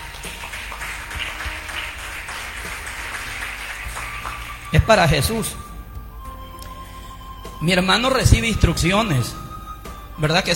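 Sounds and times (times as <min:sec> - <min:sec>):
audience applause: 0:00.0 - 0:05.8
speech: 0:04.7 - 0:05.6, 0:07.6 - 0:09.4, 0:10.2 - 0:10.5.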